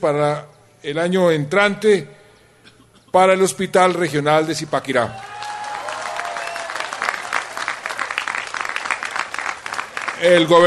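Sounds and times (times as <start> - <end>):
speech: 0.0 - 2.2, 3.1 - 5.3, 10.2 - 10.6
audience applause: 5.1 - 10.6.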